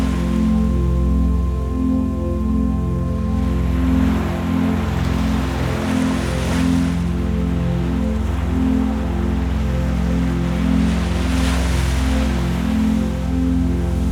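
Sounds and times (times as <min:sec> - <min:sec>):
ocean: 0:00.0 - 0:14.1
relaxing meditative music: 0:00.0 - 0:14.1.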